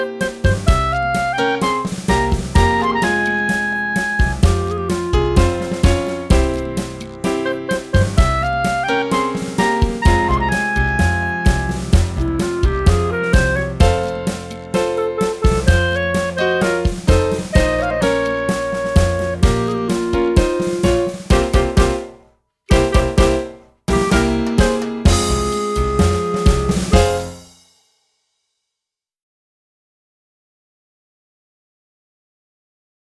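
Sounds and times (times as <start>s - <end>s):
clarinet: 0.2s - 6.5s, 7.2s - 22.0s, 22.7s - 27.4s.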